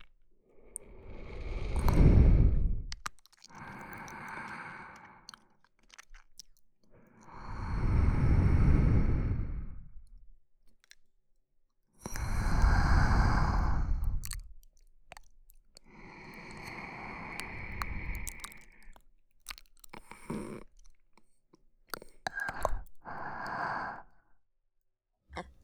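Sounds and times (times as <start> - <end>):
sleeping breathing: 0.5 - 2.9, 3.5 - 5.3, 7.1 - 10.0, 12.0 - 14.5, 15.9 - 18.8, 22.3 - 24.2.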